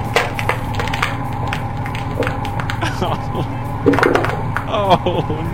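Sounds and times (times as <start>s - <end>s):
squishing bubbling sound from a played video: 0.2s - 2.8s, 3.8s - 4.7s
laughter: 2.6s - 3.8s, 4.4s - 5.5s
speech: 3.0s - 5.5s.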